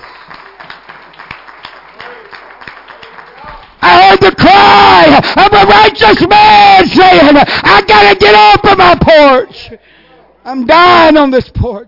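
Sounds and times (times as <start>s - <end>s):
audience clapping hands in praise: 0.0s - 3.9s
speech: 4.3s - 9.8s, 10.5s - 11.8s.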